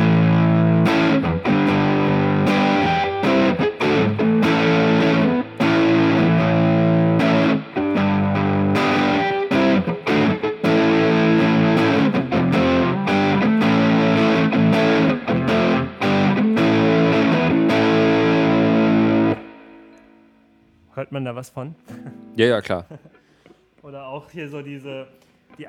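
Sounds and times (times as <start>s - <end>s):
heavily overdriven electric guitar playing chords and riffs: 0.0s - 20.4s
speech: 21.2s - 23.0s, 23.9s - 25.6s.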